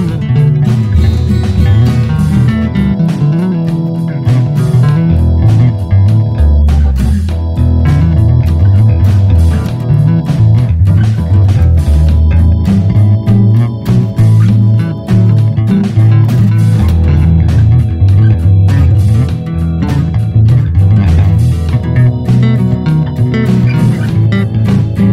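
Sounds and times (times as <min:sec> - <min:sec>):
blues bass solo in E: 0:00.0 - 0:25.1.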